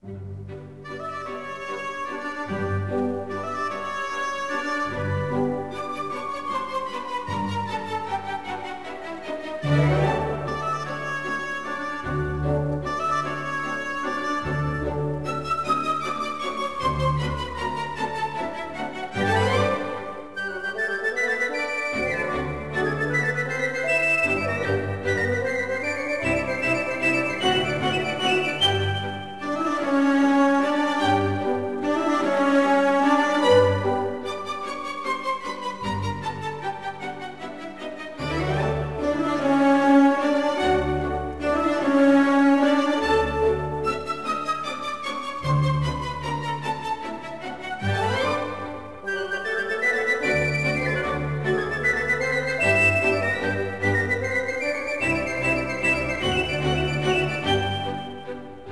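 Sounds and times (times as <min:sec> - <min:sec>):
overture: 0:00.0 - 0:58.7.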